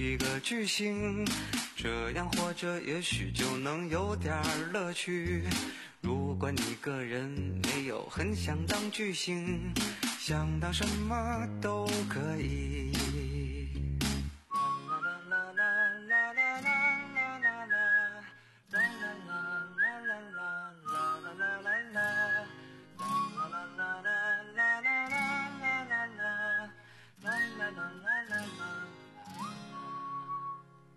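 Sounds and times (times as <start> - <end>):
steady bouncy instrumental backing: 0.0 - 2.6, 3.2 - 14.9
speech: 0.0 - 13.9
bright cheerful whistled melody in a song: 14.5 - 30.9.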